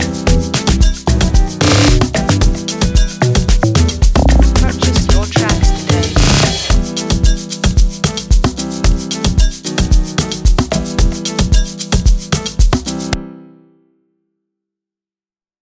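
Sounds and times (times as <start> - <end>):
amapiano instrumental music: 0.0 - 14.1.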